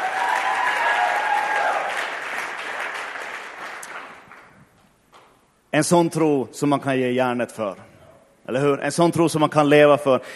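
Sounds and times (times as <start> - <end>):
crowd applause: 0.0 - 4.6
speech: 5.7 - 7.9, 8.5 - 10.3.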